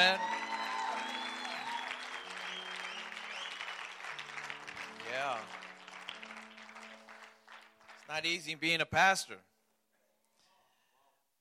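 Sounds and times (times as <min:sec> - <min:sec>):
church congregation applauding its pastors: 0:00.0 - 0:08.8
speech: 0:08.2 - 0:09.5.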